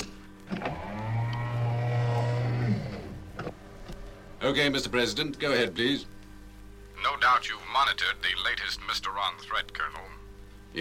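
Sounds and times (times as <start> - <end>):
sliding sound doors closing: 0.5 - 4.0
speech: 4.5 - 6.2, 7.2 - 10.7.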